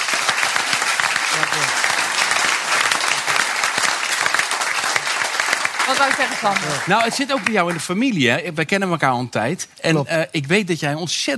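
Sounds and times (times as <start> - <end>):
audience applause: 0.0 - 8.2
speech: 5.9 - 11.3.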